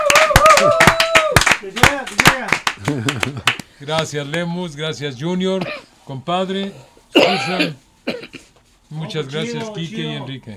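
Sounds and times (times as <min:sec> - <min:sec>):
audience applause: 0:00.0 - 0:03.6
speech: 0:00.6 - 0:00.8, 0:03.3 - 0:07.8, 0:08.9 - 0:10.5.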